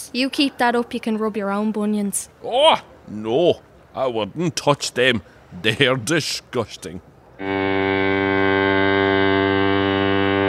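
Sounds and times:
speech: 0.1 - 8.6
foghorn blowing: 7.4 - 10.4.

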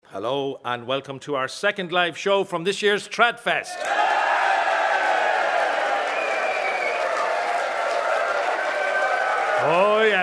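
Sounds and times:
speech: 0.2 - 4.1
rowdy audience at a TradFest music show in the Conference Centre Dublin: 3.8 - 10.2.

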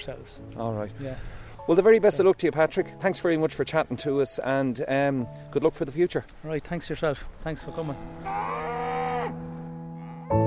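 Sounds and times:
speech: 0.0 - 8.6
dairy cows mooing on a farm in Leitrim: 8.1 - 10.4.

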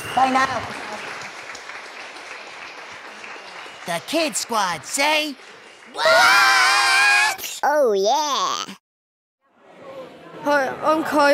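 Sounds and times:
speech: 0.2 - 0.8, 3.9 - 6.7, 7.6 - 8.8, 10.4 - 11.3
audience applause: 0.6 - 6.7.

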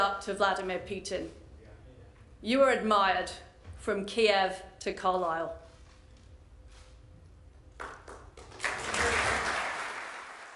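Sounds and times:
speech: 0.0 - 1.4, 2.4 - 5.6
faltering applause: 7.8 - 10.5.

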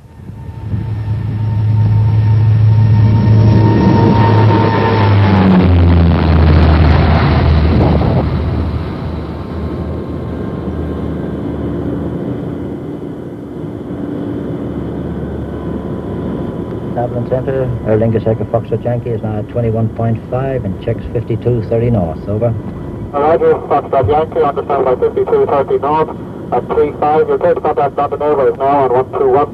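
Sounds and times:
airliner jet engines roaring at full power in takeoff roll: 0.0 - 29.5
speech: 17.3 - 29.5.

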